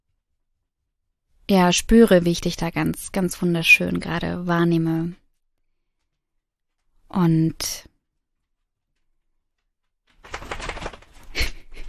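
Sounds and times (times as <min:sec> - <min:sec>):
speech: 0:01.5 - 0:05.2, 0:07.1 - 0:07.9
dog shaking itself: 0:10.2 - 0:11.6.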